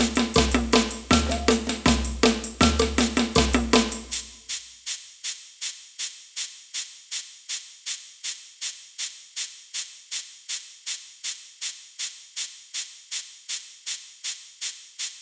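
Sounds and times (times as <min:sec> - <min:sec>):
samba band playing: 0:00.0 - 0:04.3
ganza shaker in samba band: 0:00.0 - 0:15.2.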